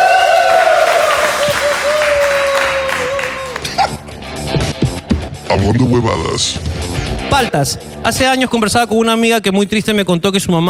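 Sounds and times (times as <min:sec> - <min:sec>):
audience applause: 0:00.0 - 0:04.0
speech: 0:05.6 - 0:10.6.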